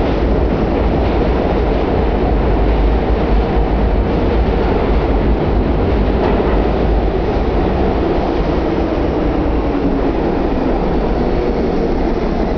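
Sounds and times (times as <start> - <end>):
train arriving: 0.0 - 12.5.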